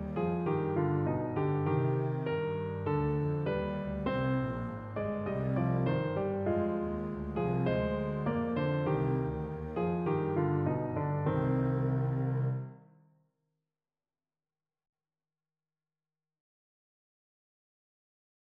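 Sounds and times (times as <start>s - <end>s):
musical accompaniment: 0.0s - 12.8s.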